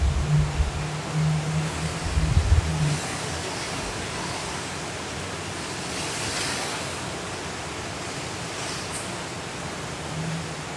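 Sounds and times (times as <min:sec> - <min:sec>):
low droning hum: 0:00.0 - 0:03.2
Hurricane Kay wind and rain roaring: 0:00.0 - 0:10.7.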